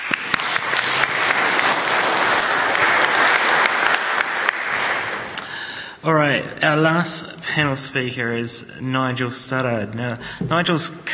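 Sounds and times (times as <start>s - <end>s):
audience applause: 0.0s - 5.8s
speech: 6.0s - 11.1s.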